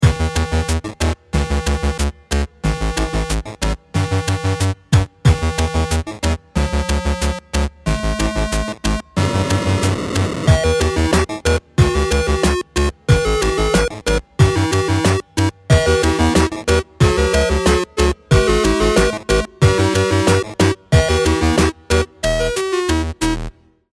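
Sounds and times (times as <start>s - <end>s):
music: 0.0s - 23.9s.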